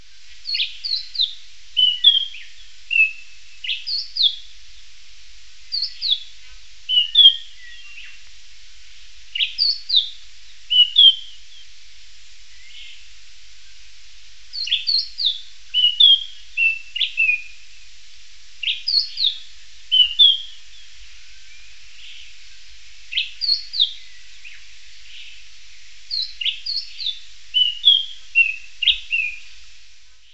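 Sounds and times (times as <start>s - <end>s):
steady hiss: 0.0s - 30.3s
bird whistling: 0.5s - 4.4s, 5.7s - 6.2s, 6.9s - 8.2s, 9.4s - 11.6s, 14.5s - 17.6s, 18.6s - 20.6s, 23.1s - 25.3s, 26.1s - 29.5s.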